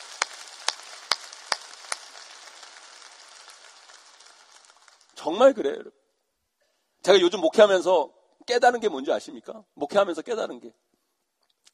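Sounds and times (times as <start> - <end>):
applause: 0.0 - 5.4
speech: 5.2 - 6.0, 7.0 - 10.8.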